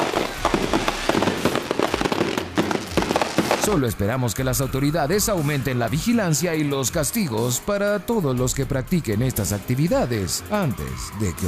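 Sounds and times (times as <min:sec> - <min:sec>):
fireworks exploding: 0:00.0 - 0:04.1
speech: 0:03.7 - 0:11.4.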